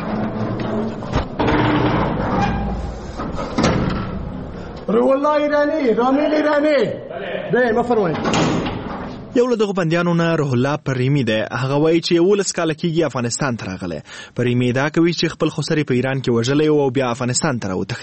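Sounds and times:
metallic knocks of the iron door: 0.0 - 4.4
heavy iron prison door in Herat opened by a guard: 0.0 - 4.7, 8.1 - 9.3
speech: 4.9 - 8.4, 9.3 - 18.0.

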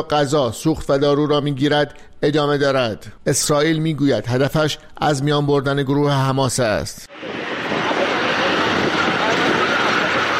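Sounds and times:
speech: 0.0 - 7.5
Israeli tanks and armored vehicles around the Gaza Strip: 7.2 - 10.3.

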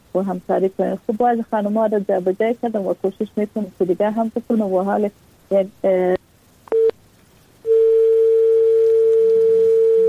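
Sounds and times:
speech: 0.2 - 6.2
telephone dial tone after a guest's call is cut off: 7.7 - 10.0.

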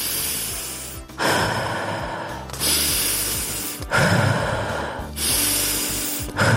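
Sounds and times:
deep breaths in and out as a stress-relief breathing exercise: 0.0 - 6.5.

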